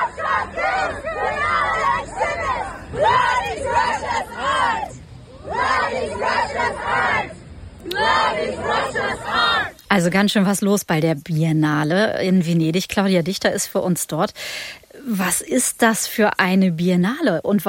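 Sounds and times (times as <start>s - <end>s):
activists chanting in protest at an art exhibition: 0.0s - 9.8s
speech: 8.0s - 17.6s.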